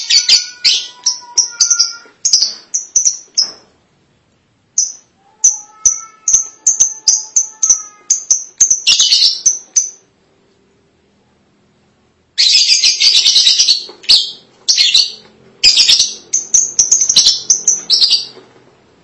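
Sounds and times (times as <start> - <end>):
lovebird calls: 0.0 - 3.7, 4.8 - 10.1, 12.4 - 18.4.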